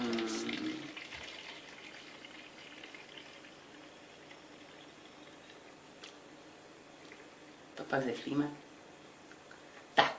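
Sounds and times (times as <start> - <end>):
water poured in to dilute a product concentrate: 0.0 - 5.7
speech: 7.8 - 8.6.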